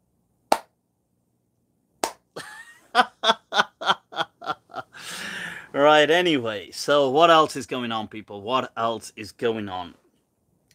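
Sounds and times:
slow clap: 2.0 - 2.2
snickering laughter: 2.4 - 5.0
speech: 5.8 - 10.0.

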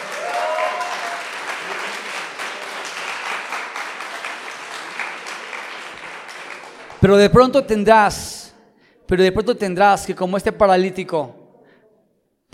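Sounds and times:
audience applause: 0.0 - 7.1
speech: 7.0 - 8.4, 9.1 - 11.4.

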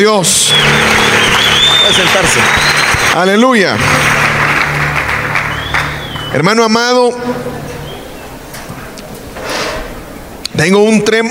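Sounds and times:
speech: 0.0 - 4.4, 6.3 - 7.6, 10.6 - 11.2
audience applause: 0.3 - 6.8.

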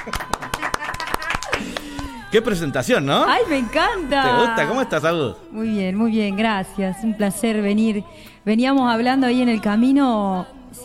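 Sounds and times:
speech: 0.0 - 0.4, 2.3 - 10.8
audience clapping: 0.0 - 2.1.

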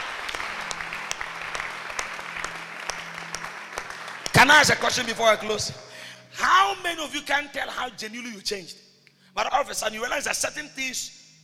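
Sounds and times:
audience clapping: 0.0 - 5.7
speech: 4.4 - 8.8, 9.4 - 11.2.

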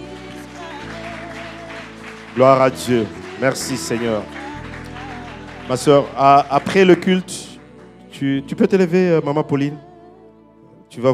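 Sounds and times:
church congregation applauding in acclaim of God: 0.0 - 8.8
speech: 2.4 - 4.4, 5.7 - 7.5, 8.2 - 9.9, 10.9 - 11.1.

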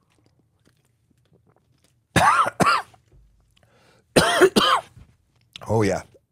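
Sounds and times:
person coughing after water went down wrong: 2.2 - 3.0, 4.2 - 5.0
speech: 5.7 - 6.1.

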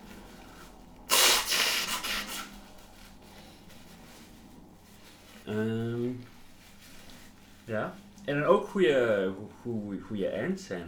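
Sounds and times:
nose blowing: 1.0 - 2.6
speech: 5.5 - 6.3, 7.7 - 10.8.

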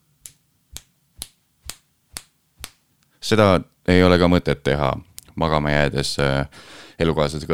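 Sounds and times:
finger snap: 0.2 - 2.8
speech: 3.3 - 7.5.

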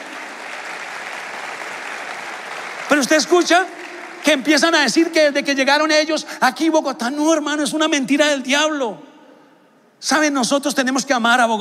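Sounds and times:
audience applauding: 0.0 - 5.2
speech: 2.9 - 9.1, 10.0 - 11.5.

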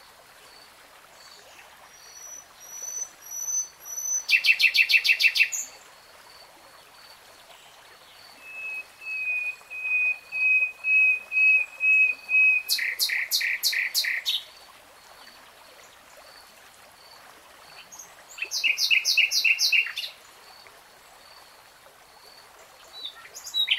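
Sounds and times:
nightingale singing: 2.1 - 5.7, 8.4 - 14.4, 18.4 - 20.1, 23.0 - 23.7.

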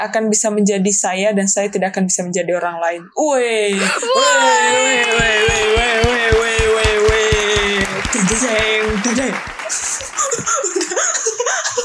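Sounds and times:
speech: 0.0 - 7.3, 7.9 - 10.9
laughter: 3.7 - 11.8
applause: 4.9 - 11.0.

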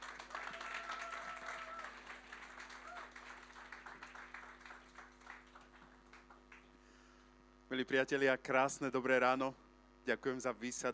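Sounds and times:
audience applause: 0.0 - 6.7
speech: 7.7 - 10.9.

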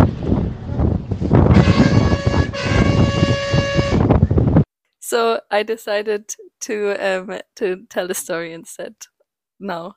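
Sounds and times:
bus driving in traffic: 0.0 - 4.6
horns honking: 1.5 - 4.2
speech: 5.2 - 9.9.

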